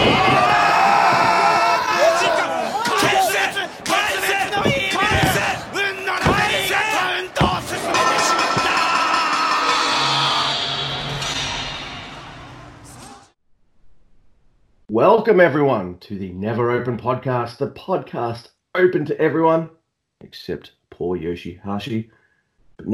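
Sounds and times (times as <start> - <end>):
professional wrestling arena crowd roaring and cheering: 0.0 - 13.3
speech: 15.1 - 22.2, 22.8 - 22.9.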